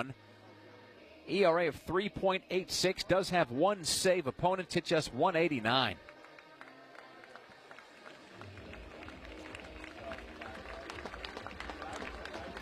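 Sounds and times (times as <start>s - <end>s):
speech: 0.0s - 0.3s, 1.3s - 6.1s
murmur of voices: 0.0s - 12.5s
lukewarm applause from a baseball crowd: 6.0s - 12.5s.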